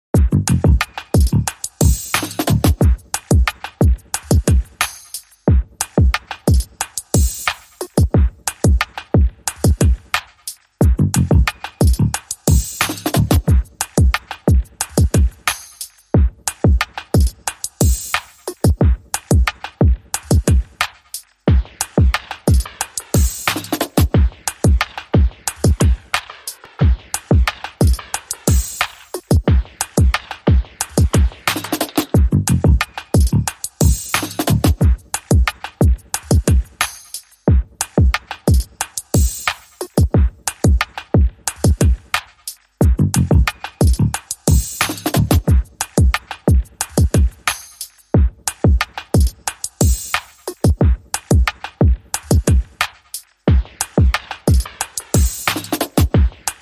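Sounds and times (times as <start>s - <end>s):
bass: 0.0s - 4.8s, 10.8s - 15.4s, 23.2s - 26.0s, 30.6s - 35.1s, 42.8s - 45.7s, 55.2s - 56.6s
drums: 0.0s - 56.6s.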